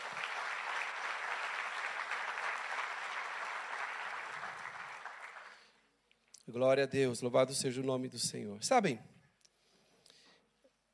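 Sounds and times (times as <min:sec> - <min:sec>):
audience applause: 0:00.0 - 0:05.7
speech: 0:06.5 - 0:09.1.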